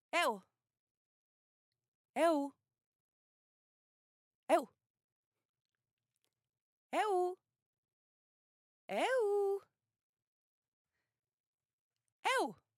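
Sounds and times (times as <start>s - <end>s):
woman calling eu: 7.0s - 7.4s, 8.9s - 9.6s, 12.3s - 12.5s.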